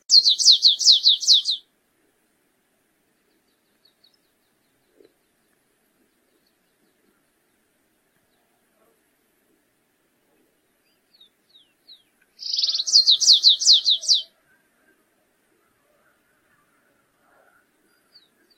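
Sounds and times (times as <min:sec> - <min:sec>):
stripe-tailed yellow finch song with buzzing trill and down-slurred notes: 0:00.0 - 0:01.6, 0:12.4 - 0:14.3.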